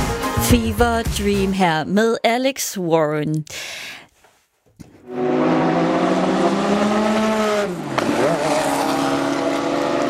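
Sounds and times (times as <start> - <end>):
speech: 0.5 - 4.0, 5.1 - 5.8
race car engines roaring at the Le Mans 24-hour endurance race: 5.0 - 10.0.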